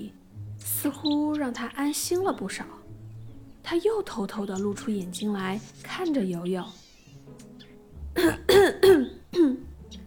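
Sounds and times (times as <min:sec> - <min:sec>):
speech: 0:00.8 - 0:02.8, 0:03.7 - 0:06.8, 0:08.2 - 0:08.5
throat clearing: 0:08.2 - 0:09.7.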